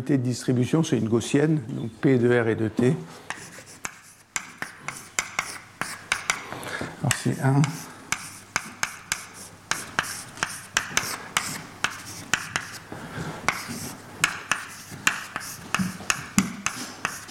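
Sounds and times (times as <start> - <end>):
speech: 0.0 - 3.4, 7.2 - 7.9
formulas being written on a board: 3.3 - 6.4, 7.1 - 12.9, 13.5 - 17.2.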